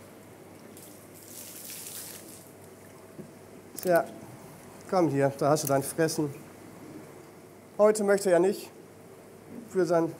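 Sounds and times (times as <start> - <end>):
octopus splashing water in its tank: 0.7 - 3.2
speech: 3.8 - 4.2, 4.9 - 6.4, 7.8 - 8.8, 9.7 - 10.1.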